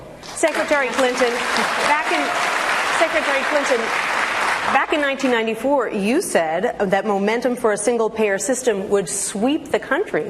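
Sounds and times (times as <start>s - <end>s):
crowd applauding in a large room: 0.2s - 5.4s
speech: 0.4s - 4.0s, 4.7s - 10.2s.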